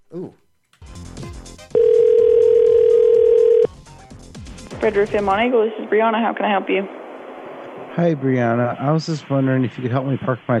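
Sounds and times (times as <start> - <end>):
telephone dial tone from receiver left off-hook: 1.8 - 3.7
speech: 4.8 - 7.0, 8.0 - 10.5.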